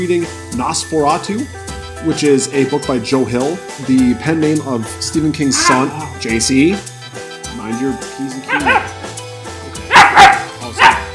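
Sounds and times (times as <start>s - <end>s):
speech: 0.0s - 6.9s, 7.7s - 9.0s
dog barking: 5.6s - 6.0s, 8.5s - 9.1s, 9.9s - 11.1s.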